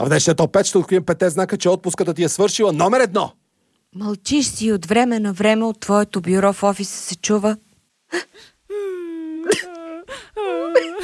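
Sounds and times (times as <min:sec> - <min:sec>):
speech: 0:00.0 - 0:08.8
person whining and whimpering: 0:08.2 - 0:11.0.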